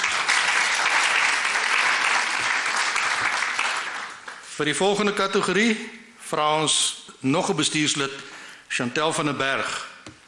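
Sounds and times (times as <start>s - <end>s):
applause: 0.0s - 4.6s
speech: 4.6s - 9.9s.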